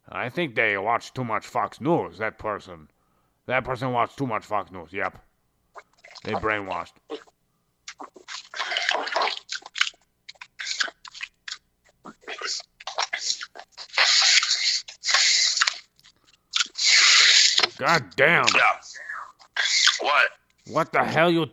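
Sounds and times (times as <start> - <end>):
speech: 0.2 - 7.3, 17.8 - 18.8, 20.0 - 21.5
person slurping and gulping water from a cup: 5.8 - 6.4, 7.9 - 17.8, 18.5 - 20.7.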